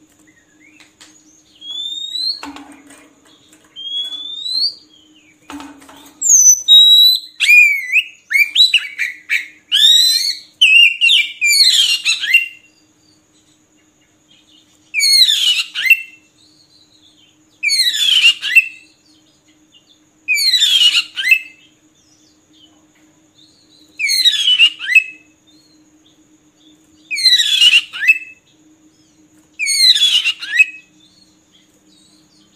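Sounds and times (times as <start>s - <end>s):
Oriental magpie-robin swooping whistles: 1.6s - 2.4s, 6.2s - 12.7s, 15.0s - 16.2s, 17.6s - 18.9s, 24.0s - 25.3s, 27.1s - 28.4s, 29.6s - 30.9s.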